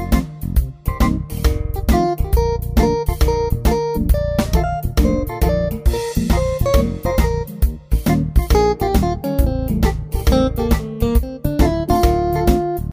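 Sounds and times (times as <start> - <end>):
music logo: 0.0 - 12.9.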